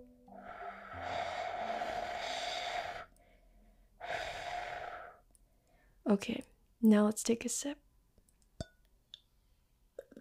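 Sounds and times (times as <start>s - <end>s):
person blowing on piping hot tea: 0.3s - 3.2s, 4.0s - 5.2s
speech: 6.1s - 7.8s.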